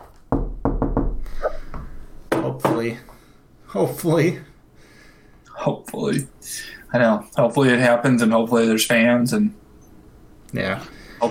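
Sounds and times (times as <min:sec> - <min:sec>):
knocking on wood: 0:00.0 - 0:01.2, 0:01.8 - 0:02.9
speech: 0:02.8 - 0:04.5, 0:05.6 - 0:09.6, 0:10.5 - 0:11.2.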